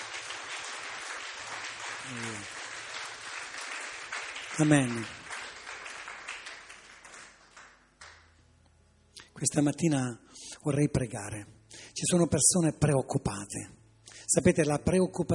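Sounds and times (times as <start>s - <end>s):
audience applauding: 0.0s - 8.3s
speech: 2.1s - 2.6s, 4.6s - 5.2s, 9.4s - 15.3s.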